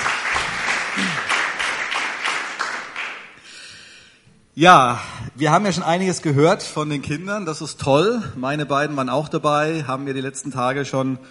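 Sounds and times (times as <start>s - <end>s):
welcome applause from audience: 0.0s - 3.4s
speech: 4.6s - 11.2s.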